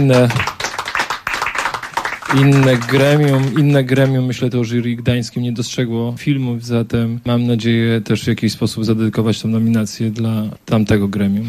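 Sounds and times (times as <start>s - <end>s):
speech: 0.0s - 0.6s, 2.3s - 11.4s
audience applause: 0.0s - 4.2s.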